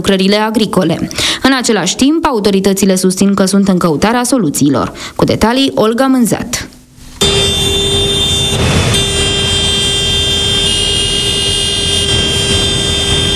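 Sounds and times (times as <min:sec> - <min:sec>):
speech: 0:00.0 - 0:07.8
tractor horns honking in protest: 0:07.2 - 0:13.3.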